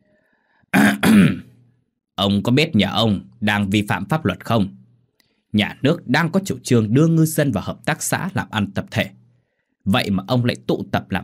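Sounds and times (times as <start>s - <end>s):
throat clearing: 0.8s - 1.6s
speech: 1.1s - 1.4s, 2.2s - 4.8s, 5.5s - 9.2s, 9.8s - 11.2s.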